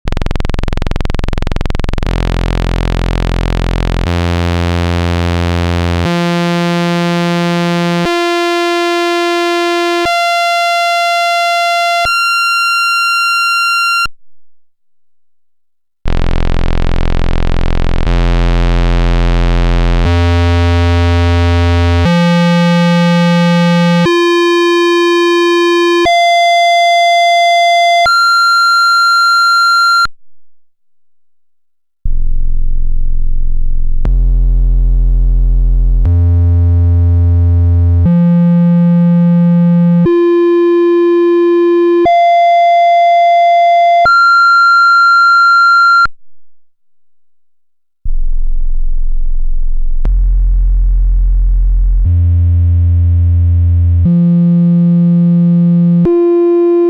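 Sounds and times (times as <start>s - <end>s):
Dreadbox and Polyend Medusa analog synthesizer oscillators: 0.0s - 14.1s, 16.1s - 29.0s, 32.1s - 46.1s, 48.1s - 56.8s.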